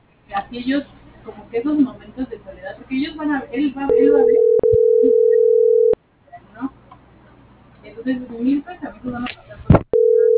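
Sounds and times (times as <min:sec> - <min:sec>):
speech: 0:00.3 - 0:05.2, 0:07.9 - 0:09.7
telephone busy signal after the caller hangs up: 0:03.9 - 0:06.0, 0:09.9 - 0:10.3.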